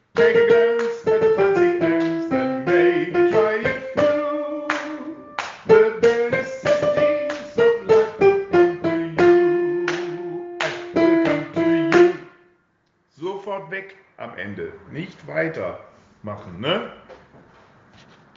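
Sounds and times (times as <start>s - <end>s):
soprano singing a tempo: 0.1s - 12.2s.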